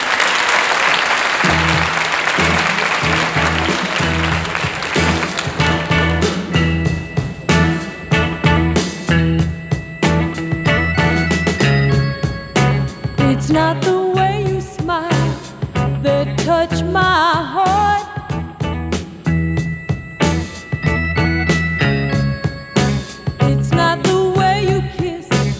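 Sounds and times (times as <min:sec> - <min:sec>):
studio audience applause welcoming a rock group: 0:00.0 - 0:09.1
band music with a pulsing bass line: 0:01.4 - 0:25.5.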